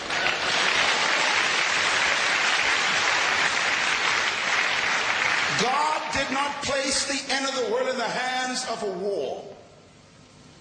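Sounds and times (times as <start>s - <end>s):
audience clapping: 0.0s - 6.4s
speech: 7.0s - 9.6s.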